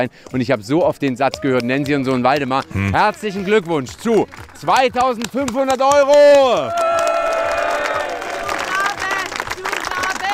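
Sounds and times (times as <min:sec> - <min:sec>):
speech: 0:00.0 - 0:06.9
crowd cheering and clapping: 0:02.6 - 0:10.3
person calling out for an encore: 0:02.7 - 0:03.2
people whooping and shouting: 0:06.4 - 0:08.7.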